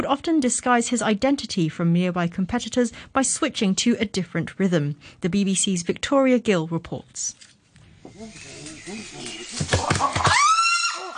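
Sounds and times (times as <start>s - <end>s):
speech: 0.0s - 7.5s, 8.2s - 10.5s
wild chimpanzee pant-hoot: 8.1s - 11.1s.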